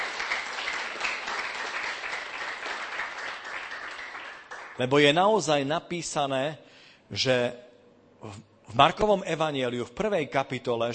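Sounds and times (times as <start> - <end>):
audience applauding: 0.0 - 4.9
speech: 4.8 - 10.9.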